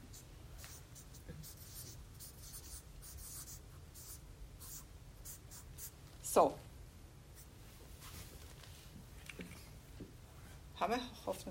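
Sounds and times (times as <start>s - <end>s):
soft steady hiss: 0.0s - 11.4s
pen scratching on paper: 0.1s - 5.9s
speech: 6.4s - 6.6s, 10.8s - 11.4s.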